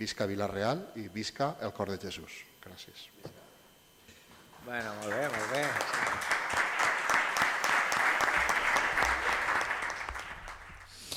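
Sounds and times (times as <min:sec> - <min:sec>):
speech: 0:00.0 - 0:03.4, 0:04.6 - 0:06.4
members of the Vila-real town council applauding: 0:04.7 - 0:11.1.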